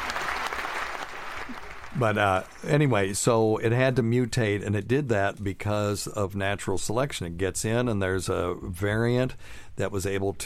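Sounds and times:
audience applause: 0.0s - 2.5s
speech: 2.0s - 10.4s.

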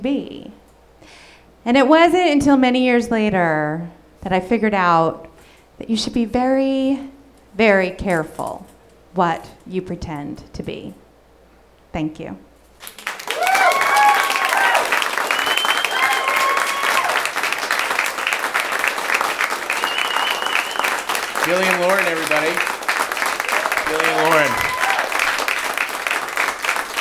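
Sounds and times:
speech: 0.0s - 11.0s, 11.9s - 12.4s, 21.5s - 22.8s, 23.9s - 24.7s
audience applause: 12.8s - 26.9s.

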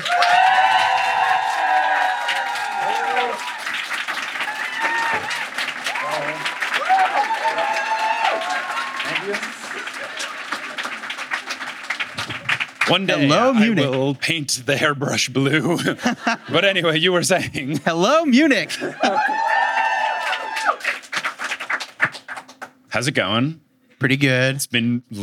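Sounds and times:
live audience applauding and cheering at a show: 0.0s - 14.3s, 18.7s - 22.8s
laughter: 9.1s - 11.4s, 15.5s - 19.6s
speech: 12.9s - 19.3s, 23.0s - 25.2s.

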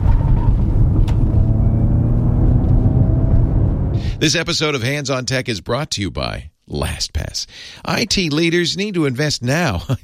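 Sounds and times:
high tonal whines: 0.0s - 4.2s
electric Mustang's synthesized engine rumble: 0.0s - 4.4s
speech: 4.2s - 10.0s.

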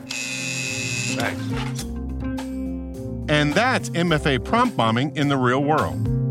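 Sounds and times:
harsh rasping electric door buzzer: 0.0s - 1.5s
speech: 1.2s - 2.0s, 3.3s - 6.2s.

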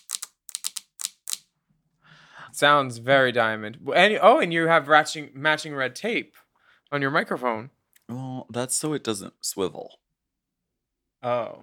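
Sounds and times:
fingers tapping impatiently on things: 0.0s - 1.4s
speech: 2.5s - 10.0s, 11.2s - 11.6s.

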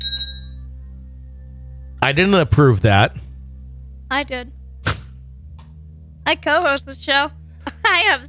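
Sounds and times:
small hand bell ringing: 0.0s - 0.6s
low steady hum: 0.0s - 8.2s
speech: 2.0s - 3.3s, 4.1s - 4.6s, 6.3s - 8.2s.

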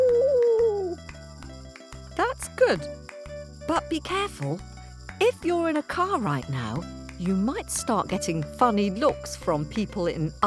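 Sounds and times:
person imitating a wolf howl: 0.0s - 1.0s
speech: 2.7s - 3.0s, 3.7s - 10.4s.

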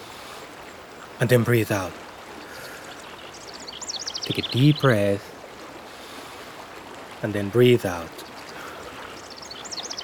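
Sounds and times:
birds singing outdoors: 1.0s - 5.2s, 7.6s - 10.0s
speech: 1.2s - 2.0s, 4.3s - 5.3s, 7.2s - 8.2s.

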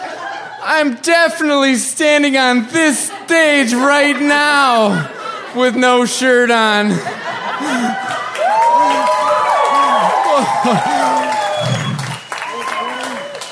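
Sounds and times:
laughter: 0.0s - 1.1s, 2.3s - 13.4s
speech: 0.7s - 8.0s, 10.5s - 11.0s
audience applause: 7.3s - 13.5s.

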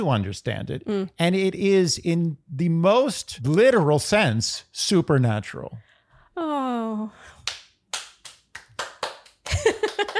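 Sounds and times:
speech: 0.0s - 7.3s
slow hand clapping: 7.4s - 10.1s.

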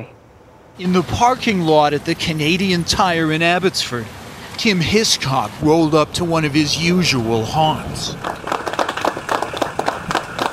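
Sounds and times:
speech: 0.8s - 8.5s
round of applause: 8.1s - 10.5s.

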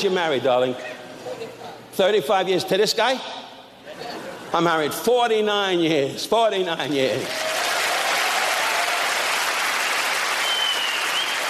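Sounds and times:
speech: 0.0s - 1.0s, 2.0s - 3.4s, 4.0s - 7.5s
audience applause: 7.2s - 11.4s.

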